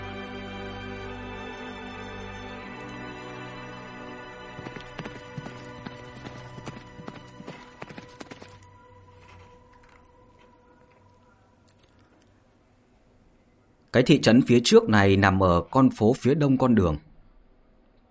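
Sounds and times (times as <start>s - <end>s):
horse hooves clip-clopping: 4.4s - 11.2s
speech: 14.0s - 17.1s.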